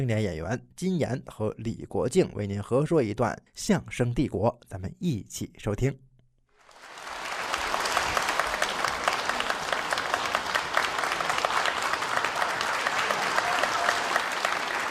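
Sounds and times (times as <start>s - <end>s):
speech: 0.0s - 6.1s
warm audience applause: 6.6s - 14.8s.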